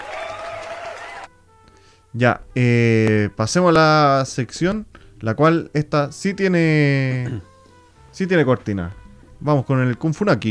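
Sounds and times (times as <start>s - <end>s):
crowd applause sound effect: 0.0s - 1.3s
speech: 2.1s - 7.5s, 8.2s - 10.4s.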